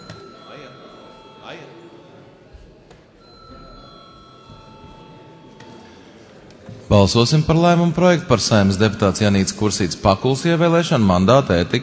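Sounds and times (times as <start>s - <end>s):
parliament chamber bell ringing: 0.0s - 2.3s, 3.2s - 6.3s
murmur of voices: 0.0s - 11.8s
speech: 1.5s - 1.8s, 6.9s - 11.8s.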